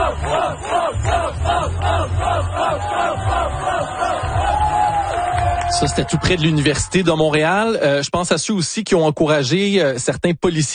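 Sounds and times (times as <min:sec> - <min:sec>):
crowd cheering cyclists in a rhythmic chant: 0:00.0 - 0:05.3
speech: 0:05.8 - 0:10.7.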